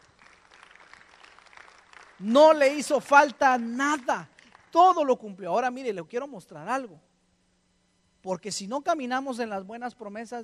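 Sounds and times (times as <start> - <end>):
audience applause: 0.0 - 2.2
speech: 2.2 - 7.1, 8.2 - 10.4.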